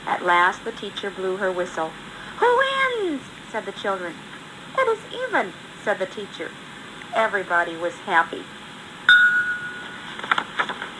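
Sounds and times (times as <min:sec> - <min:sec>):
speech: 0:00.1 - 0:08.6
school bell ringing: 0:09.1 - 0:10.0.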